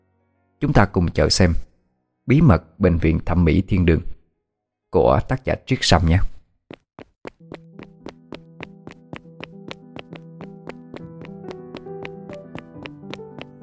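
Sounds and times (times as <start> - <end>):
speech: 0.6 - 1.7, 2.3 - 4.1, 4.9 - 6.3
heavy footsteps of two women jogging: 6.7 - 13.6.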